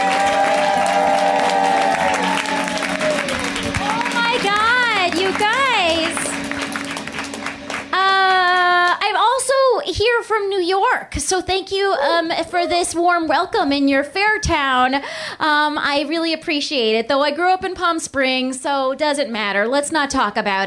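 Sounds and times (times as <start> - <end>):
high whooping cheers: 0.0 - 6.4
audience applauding: 0.0 - 9.0
speech: 10.3 - 20.6.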